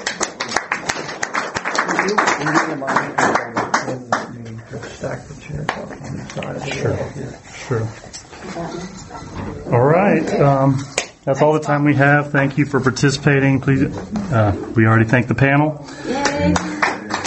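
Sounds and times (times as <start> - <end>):
applause for panelists: 0.0 - 4.3, 16.1 - 17.2
speech: 2.0 - 4.2, 5.0 - 16.7.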